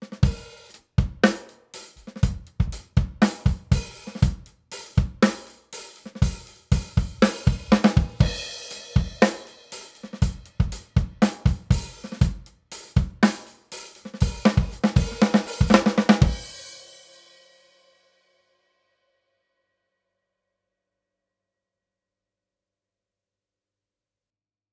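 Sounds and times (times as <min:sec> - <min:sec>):
drums: 0:00.0 - 0:18.0.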